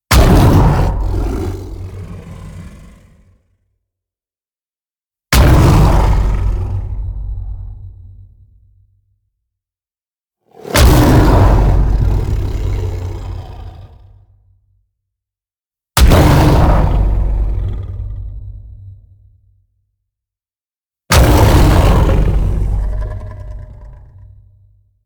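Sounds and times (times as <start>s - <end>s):
lion roaring: 0.1s - 3.5s, 5.4s - 7.1s, 10.5s - 14.3s, 16.1s - 18.5s, 21.1s - 24.4s.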